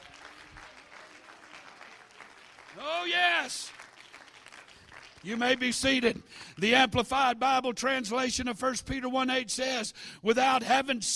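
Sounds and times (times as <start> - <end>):
audience clapping hands: 0.0 - 7.0
speech: 2.8 - 3.8, 5.2 - 11.1.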